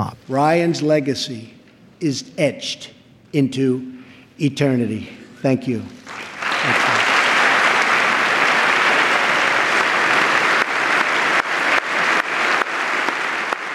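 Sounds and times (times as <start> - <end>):
speech: 0.0 - 6.2
long applause from audience of Republicans and Democrats: 6.0 - 13.7.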